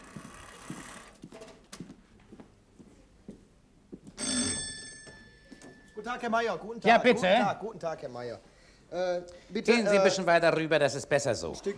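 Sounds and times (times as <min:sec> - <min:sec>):
doorbell ringing: 0:04.2 - 0:06.4
speech: 0:06.0 - 0:11.7.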